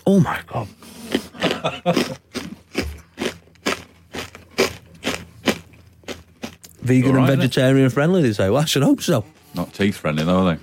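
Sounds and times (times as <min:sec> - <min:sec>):
speech: 0:00.1 - 0:02.2, 0:06.9 - 0:10.6
crunching crunchy shiitake mushroom chips: 0:01.0 - 0:07.0.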